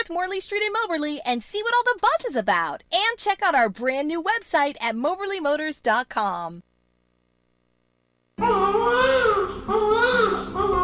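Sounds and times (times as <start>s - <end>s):
speech: 0.1s - 6.7s, 8.4s - 10.8s
baby crying: 8.4s - 10.8s.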